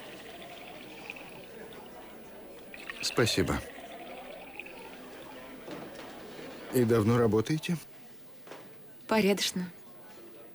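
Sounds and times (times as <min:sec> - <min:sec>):
wine being poured: 0:00.0 - 0:05.6
speech: 0:03.0 - 0:03.7, 0:06.8 - 0:07.9, 0:09.1 - 0:09.8.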